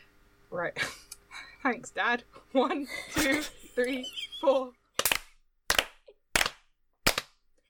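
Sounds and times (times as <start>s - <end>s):
speech: 0.5s - 1.0s, 1.6s - 4.8s
hands clapping: 5.0s - 7.4s.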